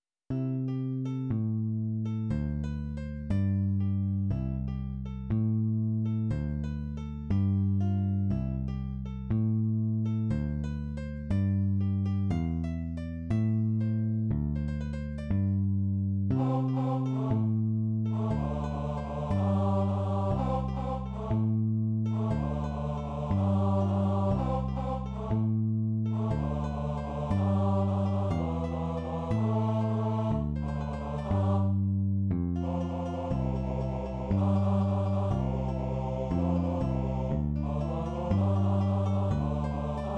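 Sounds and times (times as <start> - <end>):
bass: 0.0 - 40.1.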